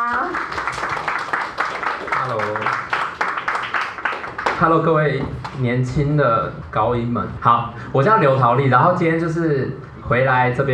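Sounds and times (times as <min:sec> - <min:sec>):
audience applause: 0:00.0 - 0:05.0
speech: 0:04.6 - 0:10.7.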